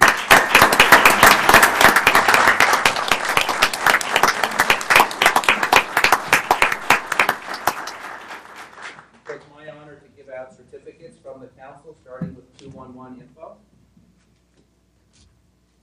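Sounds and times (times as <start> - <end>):
audience applause: 0.0 - 9.2.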